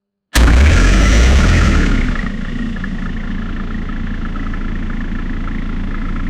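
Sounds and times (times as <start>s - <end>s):
fictional diesel engine cold start: 0.4s - 6.1s.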